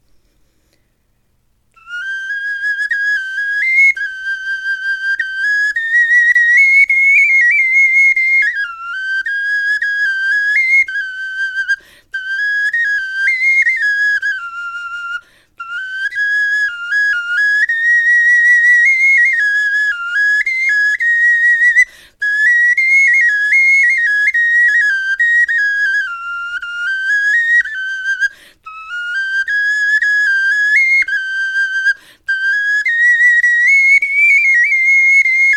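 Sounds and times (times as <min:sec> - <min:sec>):
bone flute melody: 0:01.8 - 0:35.5.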